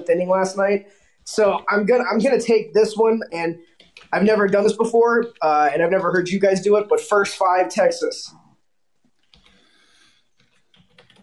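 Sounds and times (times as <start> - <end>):
speech: 0.0 - 8.4
soft typing on a computer keyboard: 3.7 - 4.1, 9.2 - 9.7, 10.4 - 11.2.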